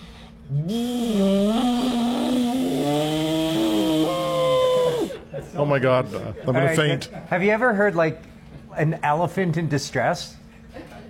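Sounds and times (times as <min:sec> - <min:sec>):
speech: 0:00.5 - 0:01.2, 0:05.6 - 0:10.4
voice imitating a jet boat: 0:00.5 - 0:05.2.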